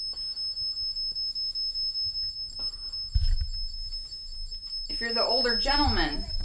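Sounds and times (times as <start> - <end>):
K2 EMF meter beeping: 2.7 - 6.4
low thump: 3.1 - 3.7, 5.5 - 6.4
speech: 5.0 - 6.4.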